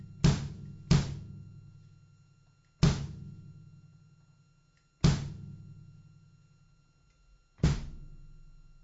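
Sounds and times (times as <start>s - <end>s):
bass drum of a drum kit being struck: 0.0s - 1.4s, 2.8s - 3.5s, 5.0s - 5.7s, 7.6s - 8.4s.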